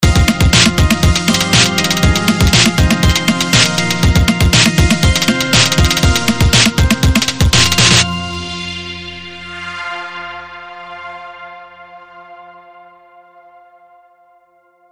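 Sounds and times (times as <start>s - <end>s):
eastern techno music: 0.0s - 12.0s.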